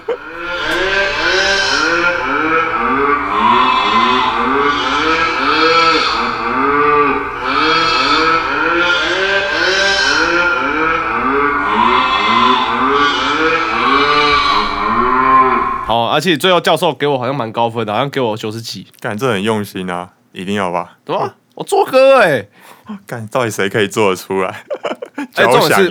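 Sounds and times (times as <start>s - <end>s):
laughter: 0.0s - 0.5s, 24.3s - 25.8s
sheep sounds: 0.0s - 15.9s, 25.2s - 25.8s
chicken sounds: 0.0s - 16.0s
cow sounds: 0.0s - 16.0s, 25.2s - 25.8s
speech: 16.2s - 24.7s, 25.3s - 25.8s.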